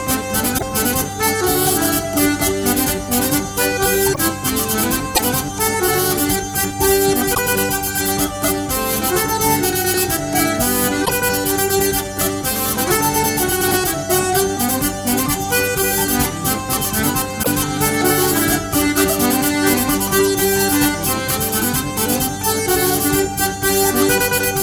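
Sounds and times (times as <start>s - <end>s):
polka music: 0.0s - 24.6s.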